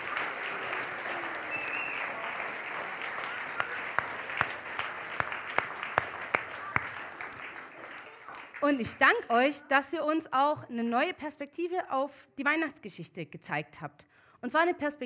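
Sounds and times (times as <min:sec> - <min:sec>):
audience applause: 0:00.0 - 0:09.2
speech: 0:08.6 - 0:15.0.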